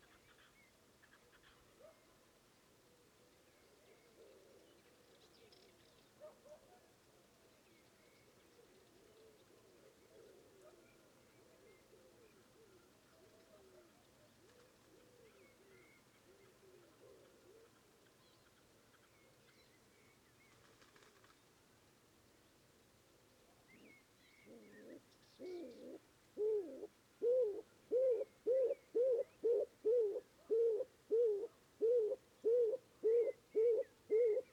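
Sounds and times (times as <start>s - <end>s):
stock dove Columba oenas calling: 24.4s - 34.5s.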